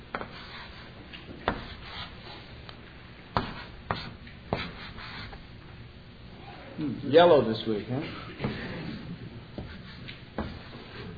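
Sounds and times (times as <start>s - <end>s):
writing numbers on a board: 0.1s - 2.4s, 3.4s - 5.4s, 8.4s - 11.1s
speech: 6.8s - 8.6s.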